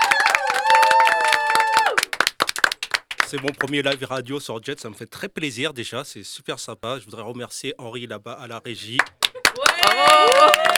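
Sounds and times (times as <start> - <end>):
people applauding: 0.0 - 4.3, 8.9 - 10.7
speech: 3.3 - 9.2.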